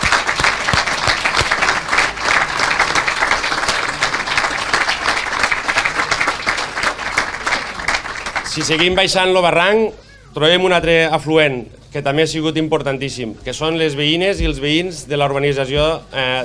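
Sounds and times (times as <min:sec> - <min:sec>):
audience applause: 0:00.0 - 0:08.9
speech: 0:08.6 - 0:16.4.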